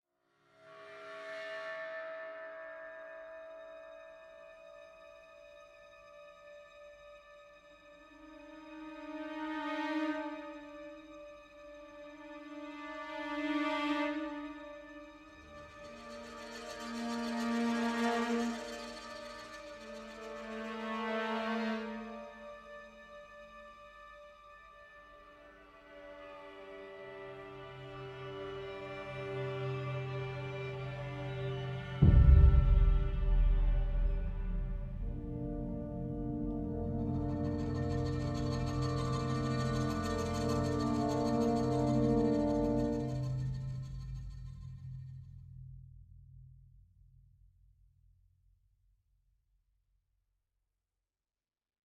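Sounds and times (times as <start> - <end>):
ambient music: 0.6 - 45.3.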